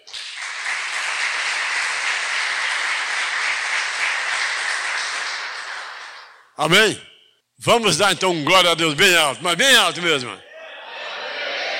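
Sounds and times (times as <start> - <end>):
crowd applauding: 0.0 - 6.5
speech: 6.6 - 10.5.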